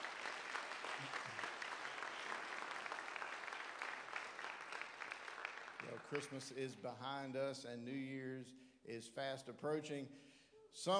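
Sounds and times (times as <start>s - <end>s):
audience clapping: 0.0s - 6.8s
speech: 5.9s - 10.9s.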